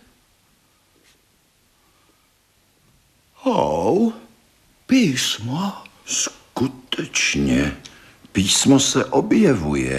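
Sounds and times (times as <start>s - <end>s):
brushing solution over a sheet of paper: 1.0s - 1.3s
speech: 3.4s - 4.2s, 4.9s - 9.9s.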